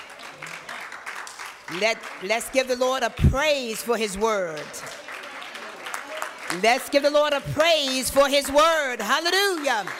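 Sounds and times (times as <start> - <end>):
audience clapping hands: 0.0 - 9.9
speech: 1.7 - 5.0, 6.5 - 9.9.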